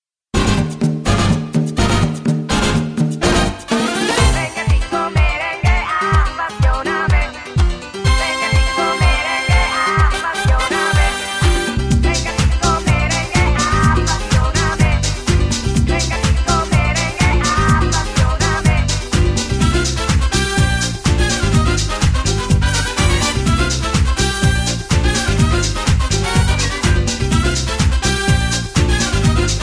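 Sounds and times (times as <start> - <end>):
merengue music: 0.3 - 29.6.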